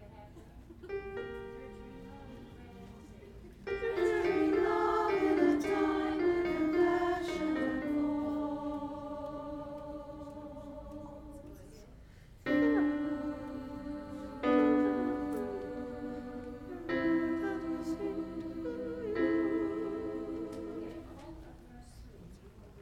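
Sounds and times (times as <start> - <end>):
soprano singing: 0.9 - 11.8, 12.5 - 21.6
alto singing: 3.7 - 11.7, 12.5 - 21.5.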